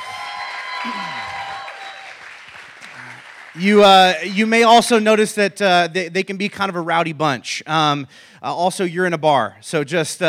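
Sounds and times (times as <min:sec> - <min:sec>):
audience applause for first-time visitors at a church gathering in a bar: 0:00.0 - 0:04.2
crowd cheering: 0:00.0 - 0:04.8
speech: 0:00.8 - 0:01.2, 0:03.6 - 0:10.2.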